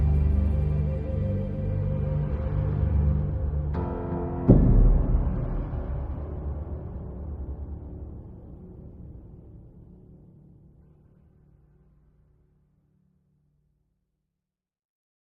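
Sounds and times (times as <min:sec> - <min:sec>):
tense music loop: 0:00.0 - 0:10.8.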